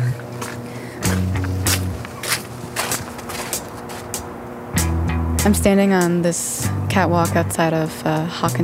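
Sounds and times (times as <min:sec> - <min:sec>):
low electrical buzz from a hydroelectric dam: 0:00.0 - 0:08.6
crunching footsteps on ice: 0:00.3 - 0:04.2
speech: 0:05.4 - 0:08.6.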